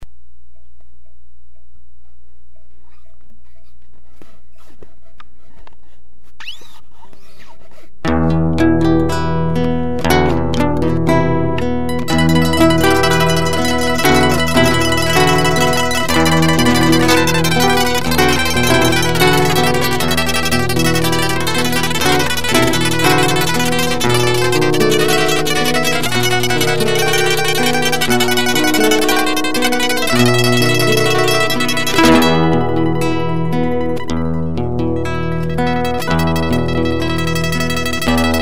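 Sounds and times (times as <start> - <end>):
acoustic guitars: 8.0 - 38.4.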